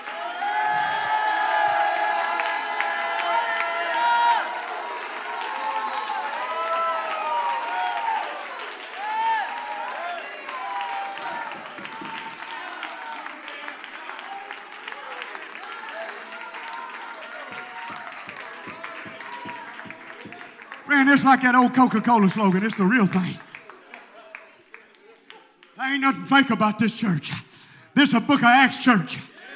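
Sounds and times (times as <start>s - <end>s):
audience cheering and whooping: 0.0s - 13.4s, 15.6s - 20.4s
audience applause: 0.0s - 27.2s
speech: 21.0s - 23.4s, 26.0s - 29.3s.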